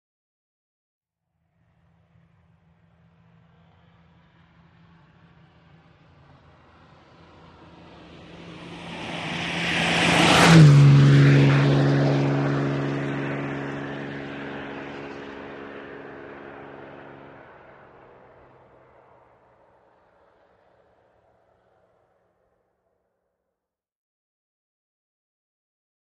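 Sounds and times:
Aston Martin passing fast outdoors: 0:03.1 - 0:22.2.

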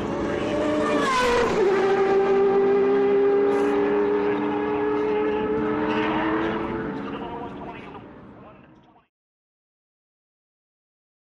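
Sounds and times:
sports car race pit: 0:00.0 - 0:09.1.

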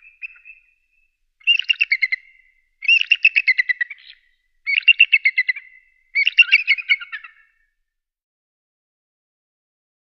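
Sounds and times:
bald eagle chirps and calls: 0:00.0 - 0:07.6.

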